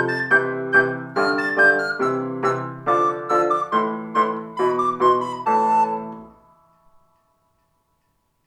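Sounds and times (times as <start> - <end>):
flute: 0.0 - 6.5.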